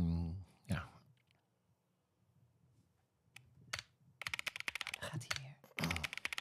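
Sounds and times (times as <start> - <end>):
typing on a computer keyboard: 3.7 - 6.3.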